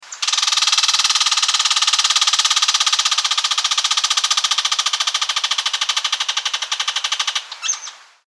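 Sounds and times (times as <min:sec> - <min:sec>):
squirrel calling: 0:00.0 - 0:08.2.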